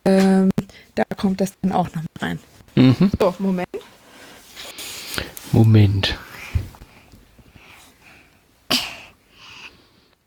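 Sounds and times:
speech: 0:01.0 - 0:04.0, 0:05.2 - 0:06.6
child coughing: 0:08.7 - 0:09.1.

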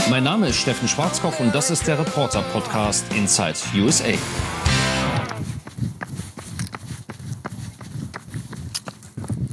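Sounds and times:
speech: 0:00.1 - 0:05.1
heavy human footsteps walking: 0:04.2 - 0:09.5.

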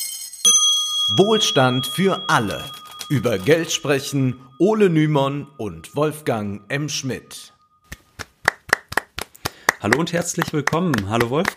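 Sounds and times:
speech: 0:00.5 - 0:07.5, 0:09.8 - 0:11.5
crowd hand clapping: 0:07.9 - 0:11.5.

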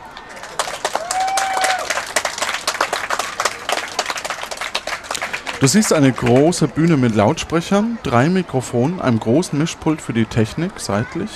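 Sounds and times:
large audience applauding: 0:00.2 - 0:07.3
speech: 0:05.6 - 0:11.3.

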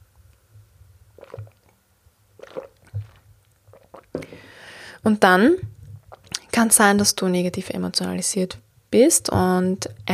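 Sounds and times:
speaker gulping and swallowing a quick drink: 0:01.1 - 0:01.8, 0:02.4 - 0:04.6, 0:05.6 - 0:06.5
wet mouth clicks: 0:01.2 - 0:01.7, 0:02.4 - 0:04.4, 0:05.7 - 0:06.5
speech: 0:05.0 - 0:05.7, 0:06.6 - 0:10.1.

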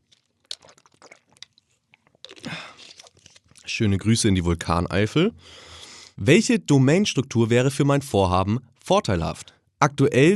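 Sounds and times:
sip of Gerolsteiner mineral water with slurps and swallowing: 0:00.0 - 0:03.7
speech: 0:03.8 - 0:10.3.

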